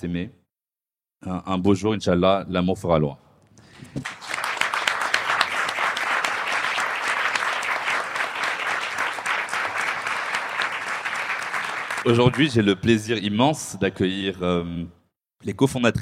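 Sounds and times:
speech: 0:00.0 - 0:00.4, 0:01.2 - 0:03.2, 0:12.0 - 0:16.0
audience applause: 0:04.0 - 0:12.7.

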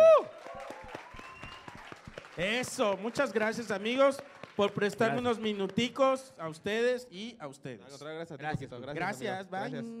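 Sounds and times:
audience applause: 0:00.0 - 0:06.0
speech: 0:02.4 - 0:09.9.

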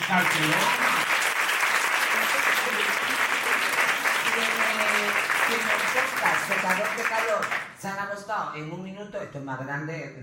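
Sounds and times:
audience applause: 0:00.0 - 0:07.8
speech: 0:00.1 - 0:00.8, 0:05.5 - 0:10.2.

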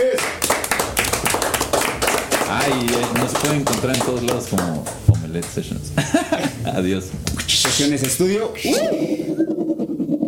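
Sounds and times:
applause: 0:00.0 - 0:05.6
laughter: 0:02.4 - 0:09.9
speech: 0:02.6 - 0:09.6.

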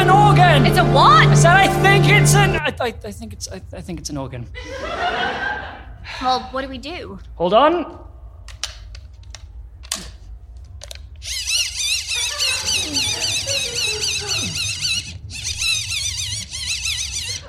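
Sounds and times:
speech: 0:00.7 - 0:08.1
laughter: 0:04.6 - 0:06.0, 0:12.0 - 0:15.0
wind-up torch being cranked: 0:10.9 - 0:17.4.

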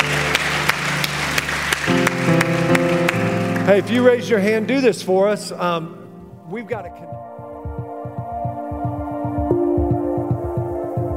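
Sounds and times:
audience applause: 0:00.0 - 0:04.5
organ-like music chords: 0:00.0 - 0:11.1
speech: 0:03.7 - 0:07.2.

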